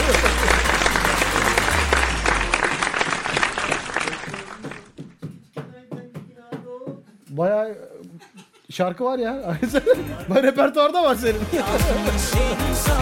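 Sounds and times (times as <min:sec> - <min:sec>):
laughter: 0:00.0 - 0:02.4, 0:09.4 - 0:12.4
applause: 0:00.0 - 0:05.2
speech: 0:08.7 - 0:13.0.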